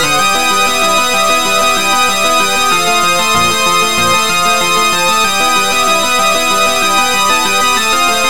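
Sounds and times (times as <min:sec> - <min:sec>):
battle music remix with sawtooth lead: 0:00.2 - 0:08.1.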